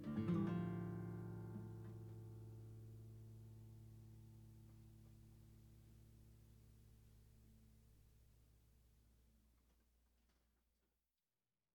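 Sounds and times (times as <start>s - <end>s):
guitar: 0.0s - 8.1s.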